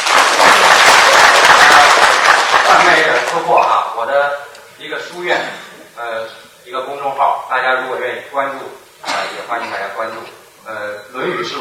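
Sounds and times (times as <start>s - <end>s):
audience applause: 0.0s - 3.8s
speech: 3.4s - 8.8s, 9.5s - 11.5s.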